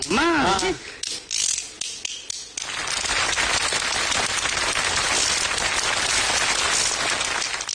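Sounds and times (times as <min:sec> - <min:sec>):
two small bamboo clapper boards being struck: 0:00.0 - 0:03.4
audience applause: 0:02.6 - 0:07.7.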